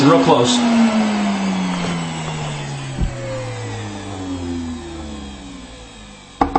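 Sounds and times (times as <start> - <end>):
shop vac motor winding down: 0.0 - 6.5.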